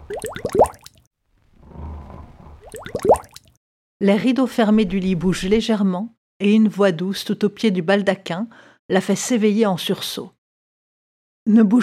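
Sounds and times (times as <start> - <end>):
speech: 0.1 - 0.6, 4.0 - 10.4, 11.4 - 11.8
snoring while asleep in a basket: 1.5 - 2.6.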